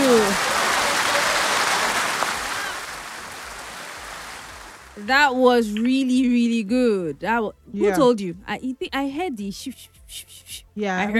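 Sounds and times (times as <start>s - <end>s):
round of applause: 0.0s - 4.9s
speech: 5.0s - 11.1s.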